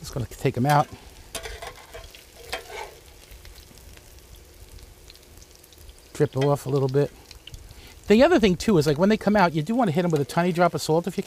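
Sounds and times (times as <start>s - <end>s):
food sizzling in hot olive oil: 0.0s - 11.2s
speech: 0.2s - 1.0s, 6.2s - 7.2s, 8.1s - 11.2s
scraping stirs: 0.7s - 3.1s.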